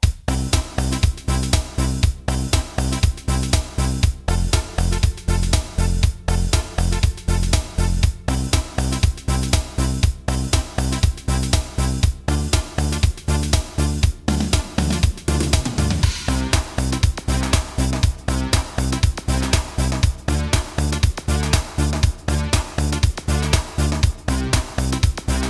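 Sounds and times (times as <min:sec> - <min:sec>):
house music: 0:00.0 - 0:25.4.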